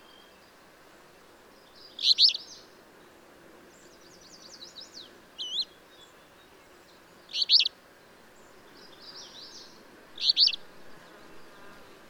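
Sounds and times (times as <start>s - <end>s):
bird song of brief high chirps: 0.0s - 2.8s, 3.7s - 10.6s.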